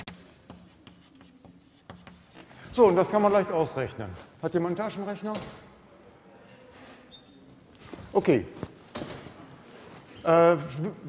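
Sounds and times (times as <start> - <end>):
scratching of a calculation being written by hand: 0.0 - 2.4
speech: 2.8 - 5.7, 8.2 - 8.6, 10.2 - 11.0.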